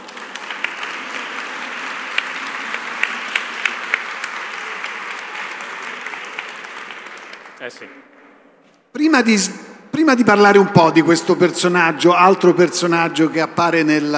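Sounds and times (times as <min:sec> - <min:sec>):
audience applause: 0:00.0 - 0:07.9
speech: 0:07.6 - 0:08.1, 0:09.0 - 0:14.1.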